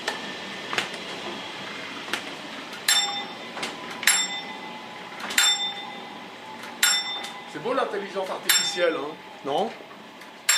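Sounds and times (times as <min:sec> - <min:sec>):
mill mechanical rumble: 0:00.0 - 0:10.5
mill machine's alarm ringing for running too slow: 0:02.8 - 0:09.7
speech: 0:07.6 - 0:09.9.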